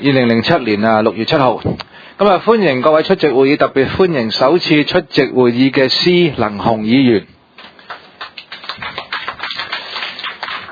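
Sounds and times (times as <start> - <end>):
speech: 0.0 - 7.4
applause: 7.6 - 10.7.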